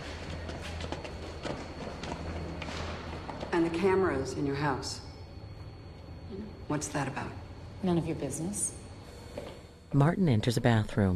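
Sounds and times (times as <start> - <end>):
footsteps descending stone steps in a grand building: 0.0 - 3.6
low steady noise: 0.0 - 11.1
speech: 3.6 - 5.1, 6.3 - 8.8, 9.4 - 11.1.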